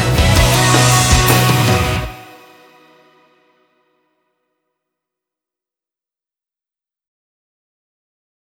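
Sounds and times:
instrumental music: 0.0s - 3.6s.

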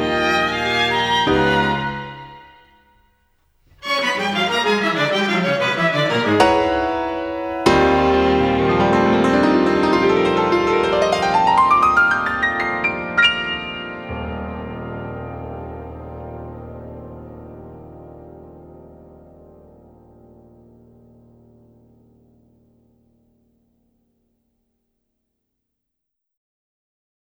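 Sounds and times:
piano and string quartet: 0.0s - 2.9s, 3.7s - 21.6s.

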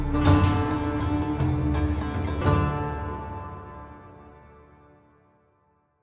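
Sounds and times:
eastern style death music stinger: 0.1s - 5.4s.

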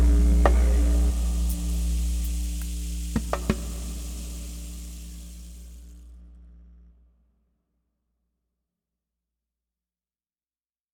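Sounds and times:
transition sound: 0.0s - 6.0s.

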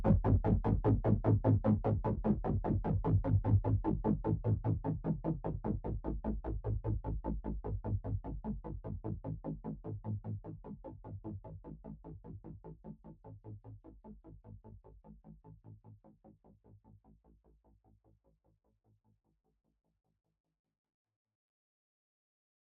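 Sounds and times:
bass: 0.0s - 17.9s.

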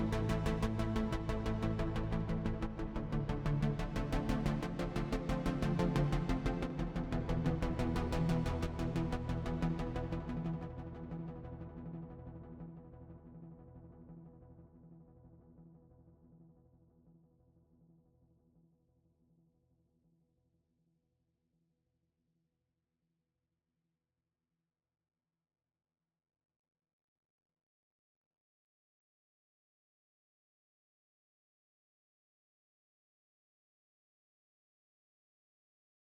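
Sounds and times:
bass: 0.0s - 14.8s.

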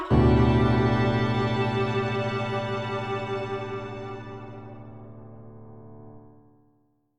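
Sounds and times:
sad soundtrack sting: 0.1s - 5.4s.

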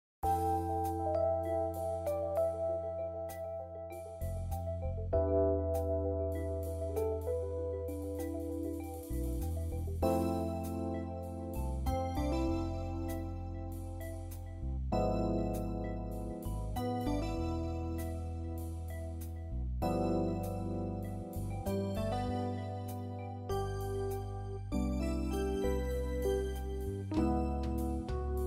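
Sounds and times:
romantic event music: 0.2s - 28.4s.

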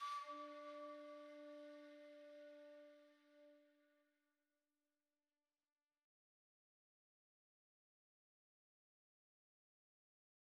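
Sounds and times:
flute: 0.0s - 3.9s.

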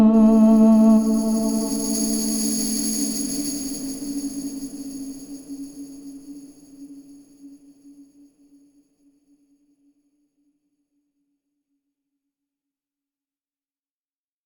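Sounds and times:
transition sound: 0.2s - 7.3s.

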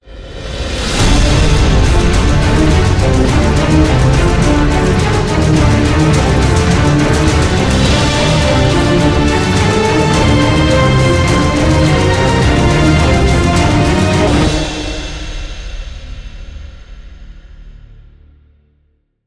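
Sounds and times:
victory jingle: 1.0s - 15.6s.

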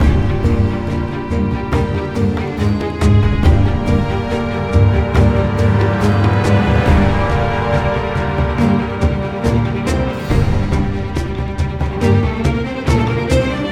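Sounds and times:
string instrument: 0.0s - 13.6s.

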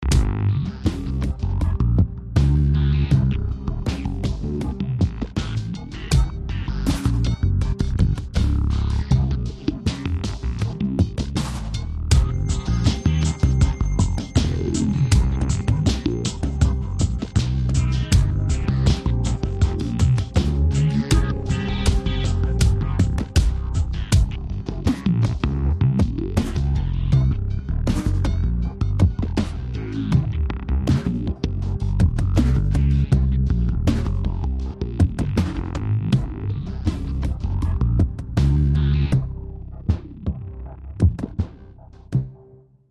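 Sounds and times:
linear groove loop: 0.0s - 42.2s.

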